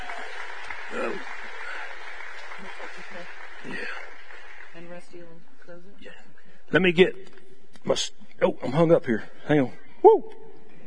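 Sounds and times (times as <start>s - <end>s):
audience applause for the band: 0.0s - 5.1s
speech: 5.0s - 10.4s.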